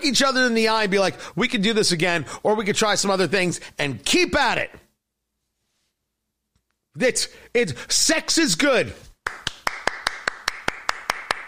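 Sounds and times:
speech: 0.0s - 4.8s, 7.0s - 9.1s
one person clapping alone: 9.2s - 11.4s.

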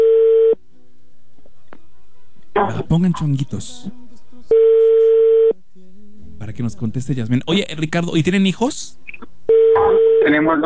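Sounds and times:
telephone ringback tone: 0.0s - 0.6s, 4.5s - 5.6s, 9.5s - 10.4s
speech: 2.6s - 4.0s, 6.4s - 9.0s, 10.3s - 10.6s.

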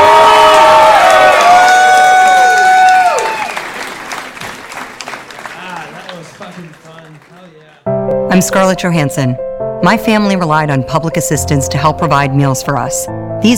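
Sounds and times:
audience applause and cheering at the end of a live show: 0.0s - 7.9s
speech: 8.4s - 13.5s.

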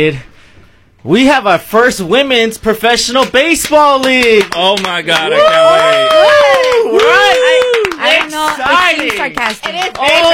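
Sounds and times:
speech: 0.0s - 0.4s, 1.0s - 10.3s
sarcastic light hand claps: 3.2s - 10.3s.

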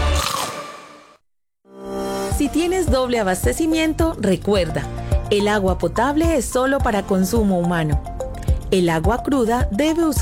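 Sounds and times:
peanuts being chewed, crunching: 0.2s - 0.6s
speech: 2.4s - 8.1s, 8.7s - 10.1s.

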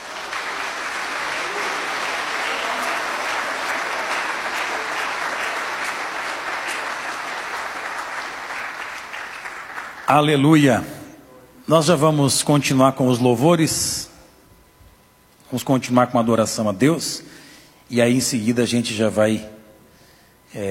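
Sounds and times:
crowd applauding: 0.0s - 10.5s
speech: 10.1s - 11.0s, 11.7s - 14.1s, 15.5s - 19.6s.

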